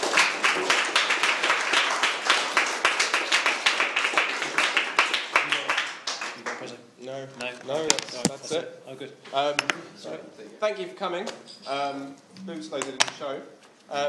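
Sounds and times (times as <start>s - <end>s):
audience applause: 0.0s - 6.7s
speech: 8.6s - 14.0s.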